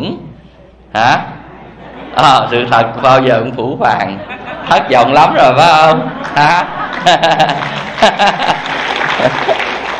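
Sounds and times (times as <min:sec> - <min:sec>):
speech: 0:01.0 - 0:01.4, 0:02.2 - 0:09.6
laughter: 0:01.5 - 0:09.9
audience applauding at a lecture: 0:06.2 - 0:09.9.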